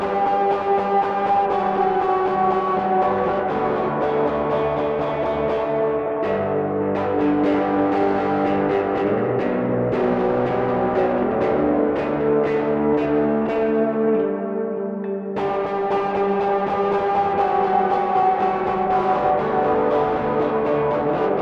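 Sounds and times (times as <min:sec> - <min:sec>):
guitar recorded through a DI line: 0:00.0 - 0:21.4.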